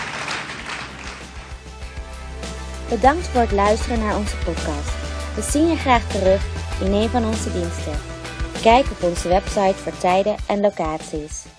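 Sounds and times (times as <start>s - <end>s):
audience applause: 0.0s - 1.7s
speech: 2.9s - 11.5s.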